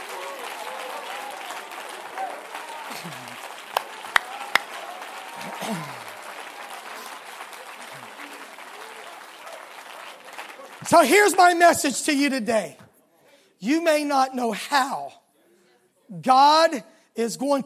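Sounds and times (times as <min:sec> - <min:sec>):
audience applauding: 0:00.0 - 0:11.8
people cheering: 0:00.0 - 0:11.8
speech: 0:03.0 - 0:03.4, 0:05.6 - 0:06.0, 0:10.8 - 0:12.8, 0:13.6 - 0:15.2, 0:16.1 - 0:17.6.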